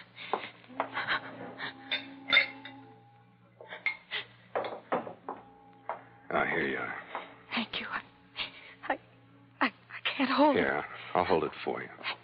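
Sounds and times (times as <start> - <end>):
low steady hum: 0.0 - 12.2
glassware clinking: 1.9 - 2.9, 3.8 - 6.0
speech: 6.6 - 7.0, 10.4 - 12.0.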